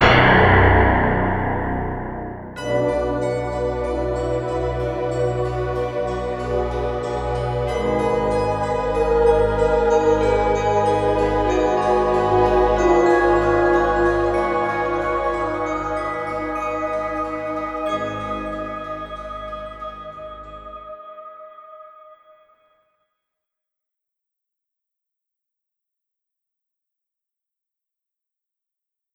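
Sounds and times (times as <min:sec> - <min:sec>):
mission failed music, alternate: 0:00.0 - 0:20.9.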